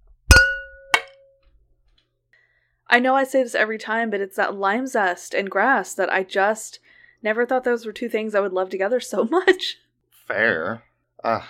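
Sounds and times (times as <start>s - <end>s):
glasses with ice clinking in a toast: 0.3s - 1.1s
speech: 2.9s - 11.4s.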